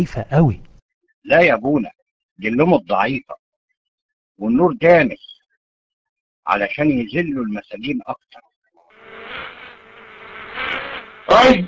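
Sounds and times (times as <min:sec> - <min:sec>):
speech: 0:00.0 - 0:03.4, 0:04.4 - 0:05.3, 0:06.4 - 0:08.5, 0:11.3 - 0:11.6
mosquitoes buzzing in a dim prison: 0:08.8 - 0:11.6.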